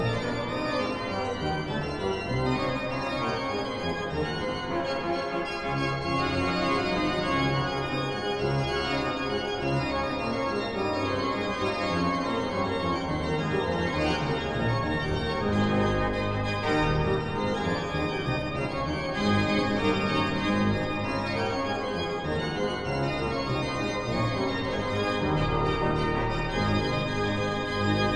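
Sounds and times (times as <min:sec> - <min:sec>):
organ concerto in G allegro: 0:00.0 - 0:28.1.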